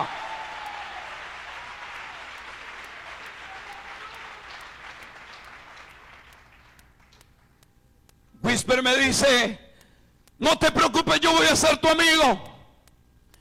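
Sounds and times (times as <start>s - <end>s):
audience applause: 0.0s - 7.2s
speech: 8.6s - 9.6s, 10.4s - 12.5s.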